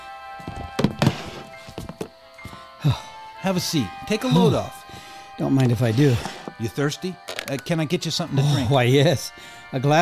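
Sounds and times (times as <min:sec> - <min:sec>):
tape recorder set down on table: 0:00.6 - 0:02.1
speech: 0:02.8 - 0:04.8, 0:05.4 - 0:09.9.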